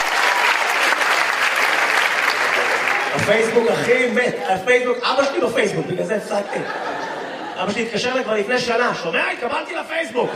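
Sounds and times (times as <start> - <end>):
audience applause during a comedy set: 0.0 - 4.5
laughter: 2.7 - 10.3
speech: 3.3 - 6.9, 7.6 - 10.3.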